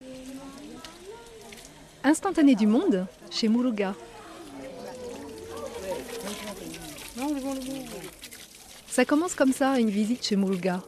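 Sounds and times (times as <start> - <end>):
water running from a yellow pipe for a ritual foot bath at Piton-Saint-Leu: 0.0 - 10.8
speech: 2.0 - 4.1, 9.0 - 10.8.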